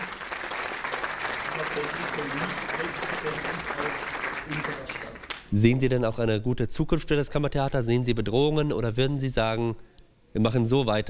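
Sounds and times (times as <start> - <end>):
audience applause: 0.0 - 5.5
speech: 1.6 - 11.0.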